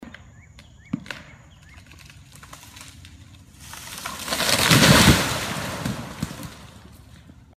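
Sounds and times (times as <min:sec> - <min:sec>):
old tree falling in a forest: 0:01.7 - 0:07.2.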